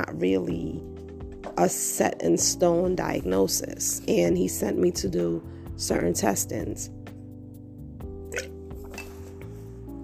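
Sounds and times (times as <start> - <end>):
speech: 0.1 - 0.9, 1.6 - 7.0
person gulping water from a glass: 8.3 - 9.1
glass clinking: 8.4 - 9.2.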